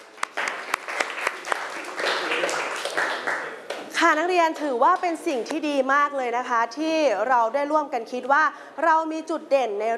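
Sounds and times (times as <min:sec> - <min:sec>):
students clapping for themselves: 0:00.0 - 0:03.9
speech: 0:04.0 - 0:09.9.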